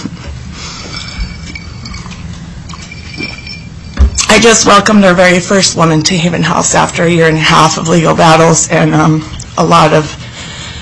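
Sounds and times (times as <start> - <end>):
steady low hum: 0.0 - 10.8
glass of water clinking while drinking: 0.6 - 4.9
speech: 4.3 - 10.2.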